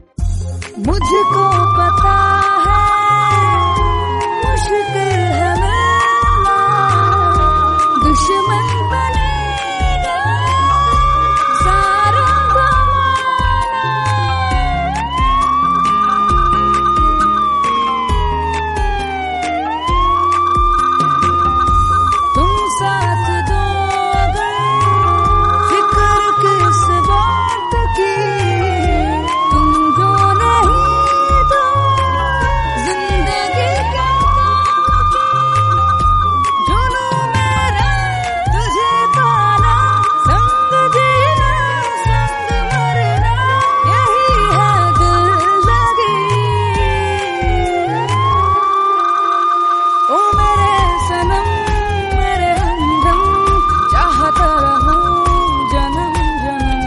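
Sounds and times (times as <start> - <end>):
siren mix: 0.8 - 56.8.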